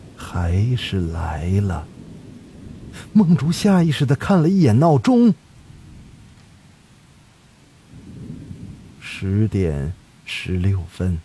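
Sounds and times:
heavy rain: 0.0s - 11.2s
speech: 0.4s - 2.0s, 3.1s - 5.4s, 9.2s - 11.2s
thunder: 1.8s - 3.7s, 7.9s - 9.2s.

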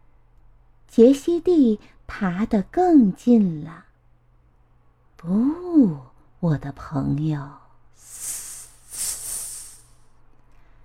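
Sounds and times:
speech: 1.0s - 3.9s, 5.2s - 8.3s
voice imitating a snake hissing: 8.0s - 10.0s.

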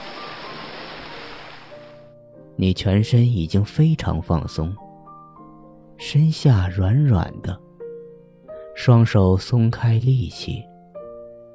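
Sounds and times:
ocean waves breaking on shore: 0.0s - 2.1s
speech: 2.6s - 4.8s, 6.1s - 7.6s, 8.8s - 10.7s.

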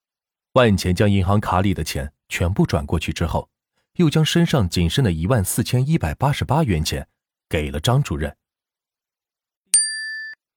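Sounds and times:
speech: 0.5s - 8.4s
phone text message notification ding: 9.8s - 10.4s.

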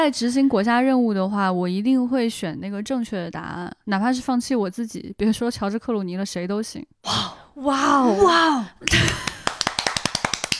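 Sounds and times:
speech: 0.0s - 9.3s
person's voice: 7.1s - 8.9s
hand clapping: 8.8s - 10.5s.

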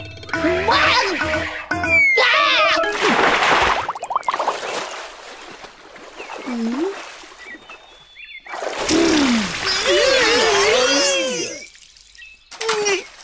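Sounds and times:
excited squealing voices: 0.4s - 2.9s, 8.9s - 11.7s
water splash from a dive: 2.8s - 7.9s, 8.4s - 13.2s.

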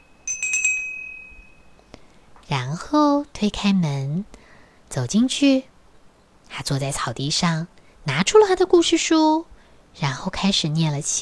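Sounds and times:
bell at farm gate being rung: 0.0s - 1.9s
speech: 2.5s - 5.7s, 6.5s - 11.2s.

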